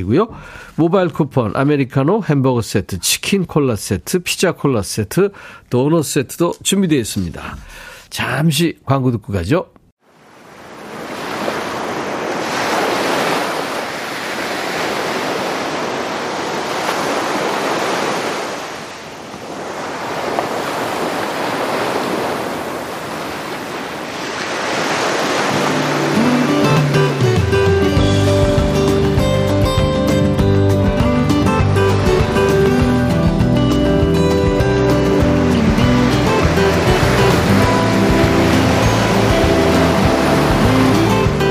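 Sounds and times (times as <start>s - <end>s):
speech: 0.0s - 9.8s
ocean waves at night sea: 10.0s - 41.4s
soft sustained music tones: 25.5s - 41.4s.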